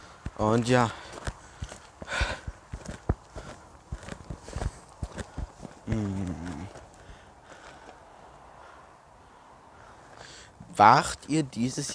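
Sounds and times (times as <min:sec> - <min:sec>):
footsteps of someone walking into a forest: 0:00.0 - 0:08.1
speech: 0:00.4 - 0:01.0, 0:10.8 - 0:11.9.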